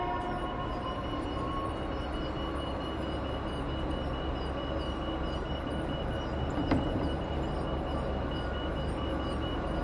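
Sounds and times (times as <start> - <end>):
motorized electric luggage trolley moving at a train station: 0.2 - 9.7.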